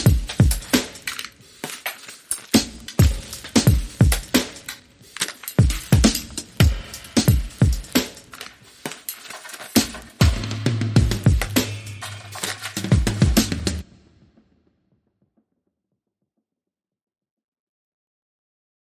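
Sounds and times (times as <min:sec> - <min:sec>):
drum beats: 0:00.0 - 0:14.4.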